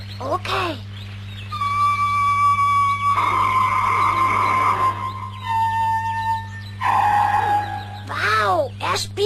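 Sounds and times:
low constant hum: 0.0 - 9.2
speech: 0.2 - 0.9
whistle tones at a steady high pitch: 1.6 - 8.0.

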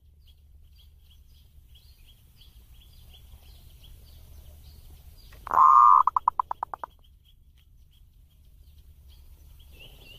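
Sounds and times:
zebra dove singing warbling coo phrases: 5.4 - 6.9.

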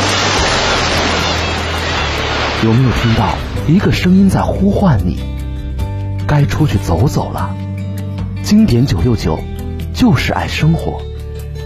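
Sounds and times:
ocean waves crashing on shore: 0.0 - 4.5
speech: 2.6 - 5.4, 6.3 - 7.6, 8.4 - 11.1.

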